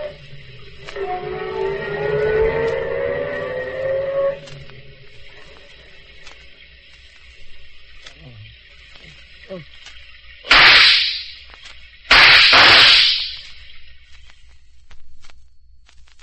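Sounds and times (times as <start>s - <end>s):
faint steady hum: 0.0s - 16.2s
gunshots fired as a signal: 10.5s - 11.4s, 12.1s - 13.5s.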